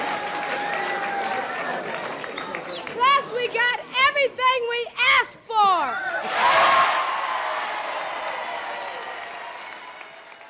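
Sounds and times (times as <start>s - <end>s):
crowd: 0.0s - 10.4s.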